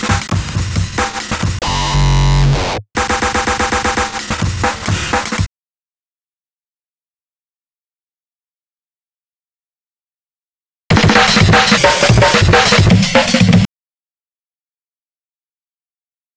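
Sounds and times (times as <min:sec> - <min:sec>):
drums: 0:00.0 - 0:05.5, 0:10.9 - 0:13.7.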